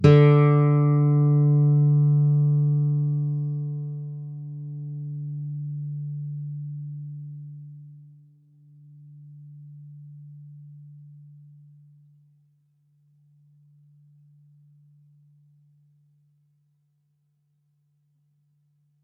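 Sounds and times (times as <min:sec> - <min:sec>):
clean D string plucked with a pick: 0:00.0 - 0:07.6.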